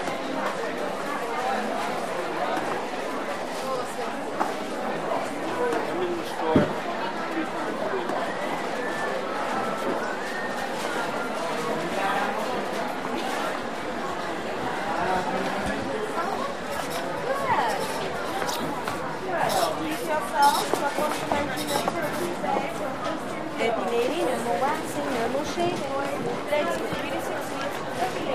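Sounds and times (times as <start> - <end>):
salespeople talking in a large department store: 0.0 - 28.3
mostly female walla in a large department store: 14.6 - 28.3.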